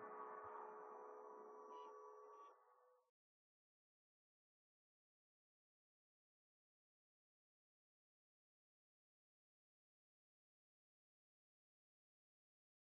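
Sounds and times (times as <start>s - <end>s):
audio drone: 0.0s - 2.5s.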